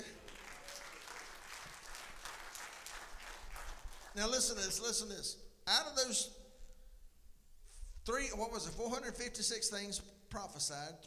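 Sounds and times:
church audience applauding: 0.0 - 4.2
speech: 4.2 - 6.4, 8.0 - 11.0.

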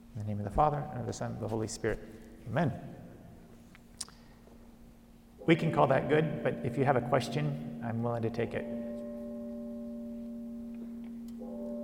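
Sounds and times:
speech: 0.2 - 3.0, 5.5 - 8.8
bell tolling: 5.4 - 11.8.

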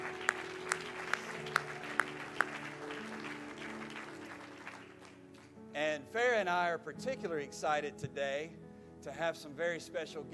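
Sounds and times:
church congregation applauding to welcome guests: 0.0 - 5.6
speech: 5.9 - 10.3.

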